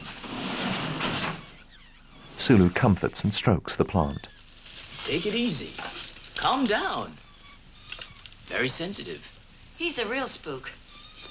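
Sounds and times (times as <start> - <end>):
door sliding open with a whooshing hiss: 0.0 - 1.4
speech: 2.4 - 4.4, 5.1 - 7.2, 8.5 - 11.2.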